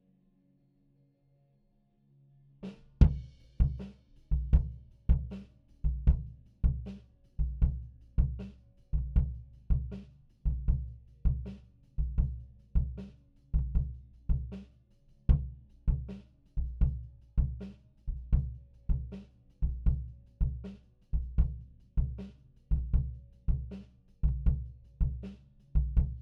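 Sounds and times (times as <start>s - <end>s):
kick drum: 3.0s - 8.4s, 9.0s - 9.9s, 10.5s - 13.0s, 13.6s - 14.5s, 15.3s - 17.6s, 19.7s - 20.6s, 21.2s - 25.2s, 25.8s - 26.2s.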